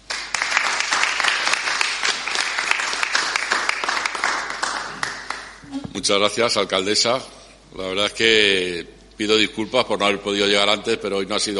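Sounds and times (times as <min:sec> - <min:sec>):
audience applause: 0:00.0 - 0:05.5
speech: 0:06.0 - 0:11.5.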